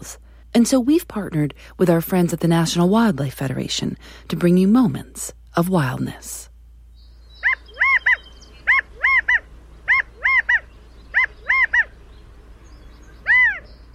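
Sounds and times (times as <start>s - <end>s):
speech: 0.1s - 6.5s
California quail calling: 7.2s - 13.9s.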